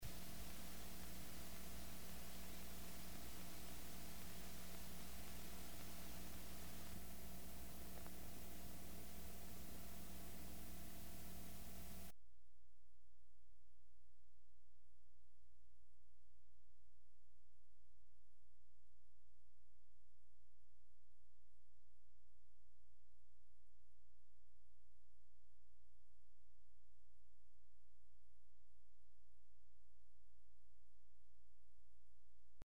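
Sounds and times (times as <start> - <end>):
vinyl line noise: 0.0 - 12.1.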